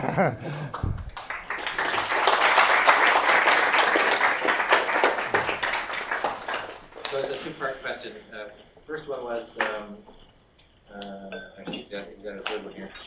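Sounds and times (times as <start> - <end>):
speech: 0.2 - 0.9, 7.1 - 10.3, 10.9 - 13.0
audience applause: 0.5 - 7.2.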